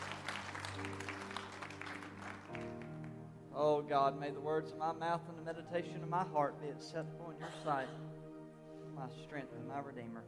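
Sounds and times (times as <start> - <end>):
audience hand clapping: 0.0 - 3.2
speech: 3.6 - 8.1, 9.0 - 10.2.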